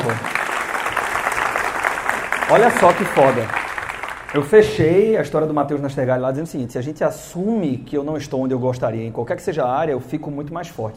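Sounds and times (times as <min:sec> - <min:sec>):
audience applause: 0:00.0 - 0:04.7
speech: 0:02.5 - 0:03.6, 0:04.3 - 0:10.9.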